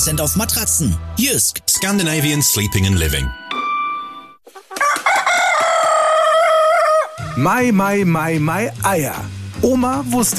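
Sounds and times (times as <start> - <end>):
speech: 0.0 - 3.4, 7.4 - 10.3
rooster crowing: 4.7 - 7.4.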